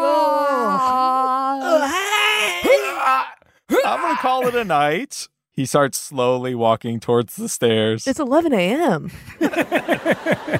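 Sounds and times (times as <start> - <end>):
person yawning: 0.0 - 4.7
speech: 3.2 - 10.5
laughter: 3.7 - 5.0, 9.1 - 10.5.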